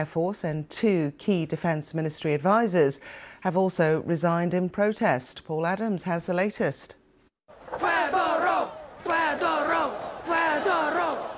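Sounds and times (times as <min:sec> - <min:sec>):
speech: 0:00.0 - 0:07.0
crowd chanting in a Kyiv square: 0:07.5 - 0:11.3.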